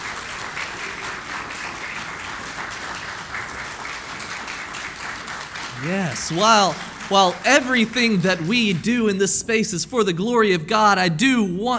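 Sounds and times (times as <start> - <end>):
audience applause: 0.0 - 8.8
speech: 5.8 - 11.7.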